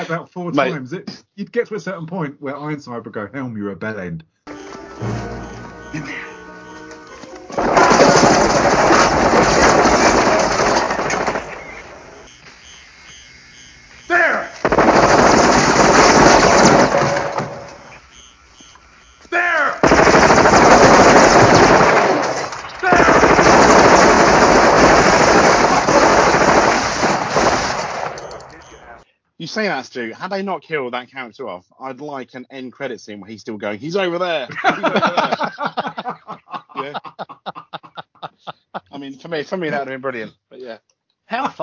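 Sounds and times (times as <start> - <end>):
speech: 0.0 - 4.4, 5.0 - 5.3, 29.5 - 36.2, 36.8 - 37.3, 39.0 - 41.6
laughter: 5.8 - 6.8, 34.5 - 39.8, 41.3 - 41.6
automatic gunfire from a film scene: 7.6 - 12.3, 14.5 - 17.9, 19.8 - 28.7.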